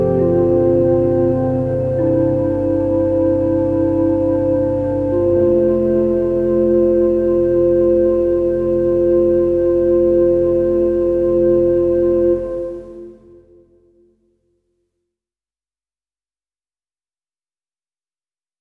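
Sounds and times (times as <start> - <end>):
organ chorale arrangement: 0.0 - 13.8.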